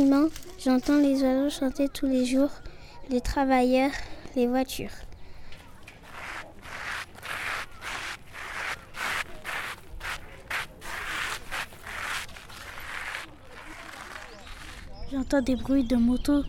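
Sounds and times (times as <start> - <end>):
speech: 0.0 - 5.1, 15.1 - 16.4
rustling bushes: 5.6 - 15.3
rubbing wood: 6.0 - 14.8.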